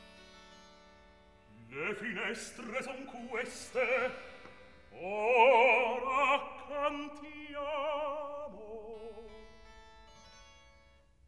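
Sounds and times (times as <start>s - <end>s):
recitative singing: 1.5s - 9.4s.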